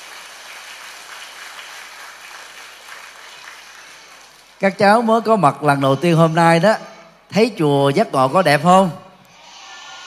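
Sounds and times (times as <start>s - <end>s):
children applauding: 0.0s - 4.7s
speech: 4.6s - 9.0s.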